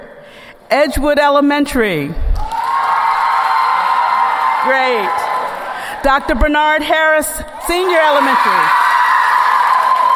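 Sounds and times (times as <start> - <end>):
speech: 0.7 - 2.2, 4.6 - 5.3, 6.0 - 8.8
children clapping and cheering: 2.4 - 5.9, 8.2 - 10.1.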